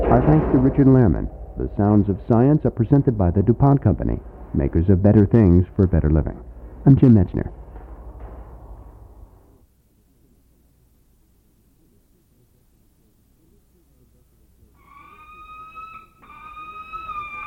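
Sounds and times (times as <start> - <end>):
speech: 0.2 - 7.6
Harris's hawk vocalizations: 14.8 - 17.4.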